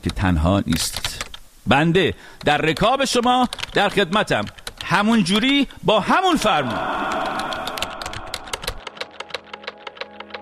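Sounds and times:
typing on a computer keyboard: 0:00.0 - 0:01.4, 0:02.4 - 0:05.6, 0:07.0 - 0:10.3
speech: 0:00.0 - 0:07.4.

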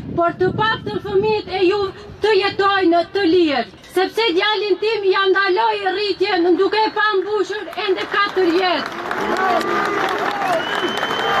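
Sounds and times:
speech: 0:00.2 - 0:11.3
protesters clapping: 0:07.5 - 0:11.3
protesters cheering and shouting in front of the Basic Court in Skopje: 0:08.9 - 0:11.3.

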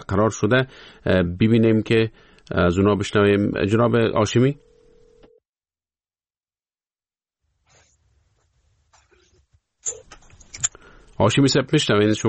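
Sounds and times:
speech: 0:00.1 - 0:04.6, 0:11.2 - 0:12.2
telephone line tone: 0:04.5 - 0:05.5.

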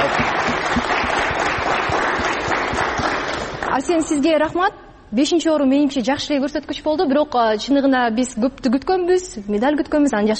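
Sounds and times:
studio audience applause for Olympic athletes: 0:00.0 - 0:03.8
speech: 0:03.8 - 0:10.3.

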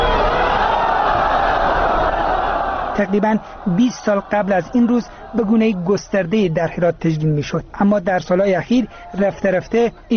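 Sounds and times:
thousands of Herat residents chanting outside Herat stadium: 0:00.0 - 0:07.1
speech: 0:03.0 - 0:10.1.

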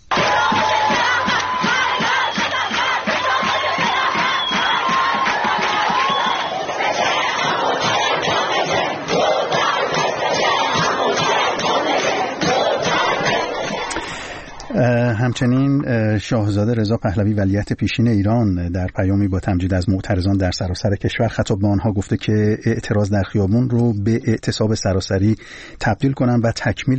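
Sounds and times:
students chanting at a university protest: 0:00.0 - 0:15.0
speech: 0:15.4 - 0:26.9.

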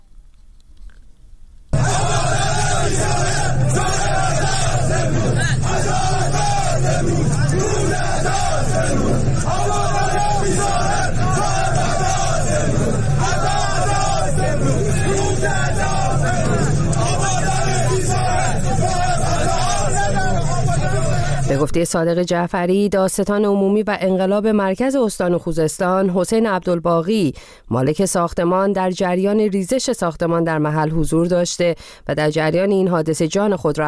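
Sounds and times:
large crowd shouting and chanting outside building: 0:01.8 - 0:21.6
speech: 0:21.5 - 0:33.8.

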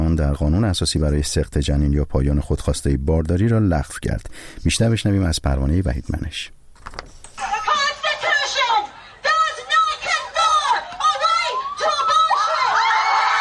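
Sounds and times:
speech: 0:00.2 - 0:07.0
protesters chanting and shouting outside the US Supreme Court: 0:07.4 - 0:13.2.

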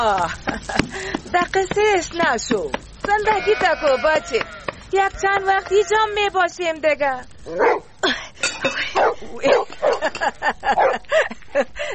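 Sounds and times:
speech: 0:00.0 - 0:11.9
dog barking near a tent: 0:07.5 - 0:07.9, 0:09.0 - 0:10.1, 0:10.7 - 0:11.0.

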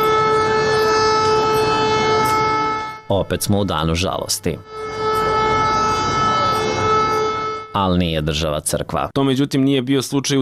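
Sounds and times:
civil defence all-clear sirens sounding across Belgrade on a day of mourning: 0:00.0 - 0:07.9
speech: 0:03.1 - 0:05.0, 0:07.7 - 0:10.4.

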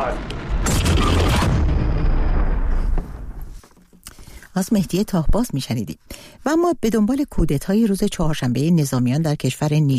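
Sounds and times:
explosion boom from a film trailer: 0:00.0 - 0:03.6
speech: 0:04.6 - 0:09.9.

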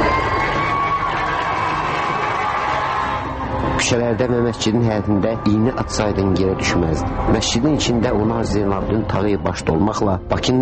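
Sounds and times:
huge crowd cheering and applauding in Baku: 0:00.0 - 0:04.1
speech: 0:03.9 - 0:10.6.

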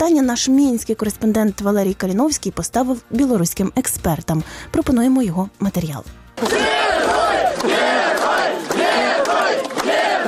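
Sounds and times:
speech: 0:00.0 - 0:06.8
crowd shouting greetings at bus station: 0:06.4 - 0:10.2.

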